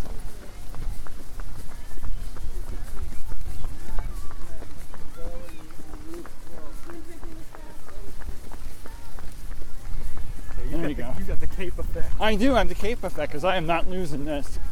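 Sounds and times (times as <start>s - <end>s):
person running outdoors footsteps: 0.0s - 14.7s
speech: 12.2s - 14.6s.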